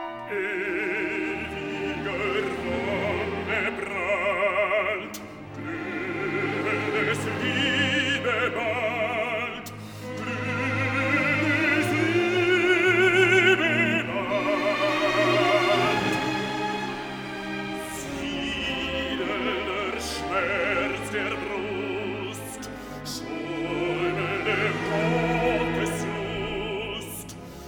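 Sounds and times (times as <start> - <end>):
orchestral symphony in E flat major: 0.0 - 27.6.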